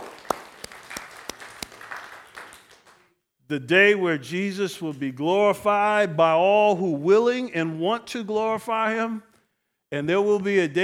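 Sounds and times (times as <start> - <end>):
audience applause: 0.0 - 3.1
speech: 3.5 - 9.3, 9.9 - 10.8.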